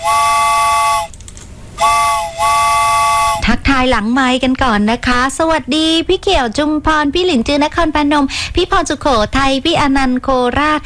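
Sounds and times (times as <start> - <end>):
train whistle sound effect: 0.0 - 1.1, 1.8 - 3.5
speech: 3.8 - 10.8.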